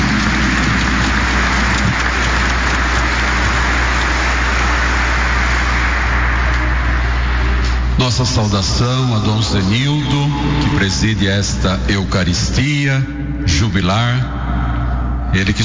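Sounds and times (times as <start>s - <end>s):
audience applause: 0.0s - 8.0s
speech: 8.4s - 14.7s, 15.3s - 15.6s.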